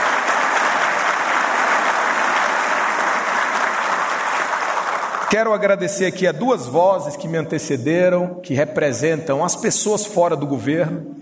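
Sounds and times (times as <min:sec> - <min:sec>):
audience applause: 0:00.0 - 0:05.4
speech: 0:05.3 - 0:11.2.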